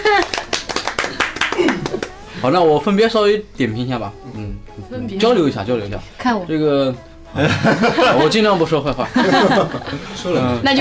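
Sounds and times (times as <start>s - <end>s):
people clapping: 0.0s - 2.3s
speech: 2.4s - 10.7s
laughter: 7.4s - 10.7s.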